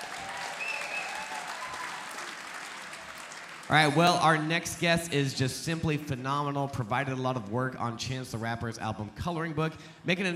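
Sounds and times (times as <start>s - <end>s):
audience applause: 0.0s - 4.5s
speech: 3.7s - 10.3s.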